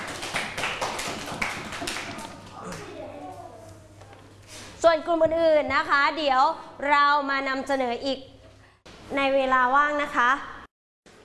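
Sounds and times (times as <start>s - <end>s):
students clapping for a group: 0.0s - 2.8s
speech: 4.8s - 8.3s, 9.1s - 10.5s.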